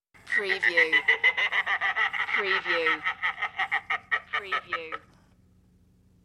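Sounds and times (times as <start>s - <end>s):
evil laugh: 0.3s - 5.1s.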